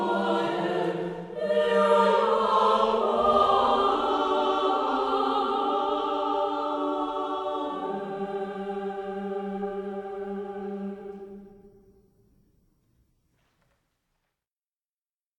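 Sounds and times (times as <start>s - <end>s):
recital choir singing: 0.0s - 12.0s.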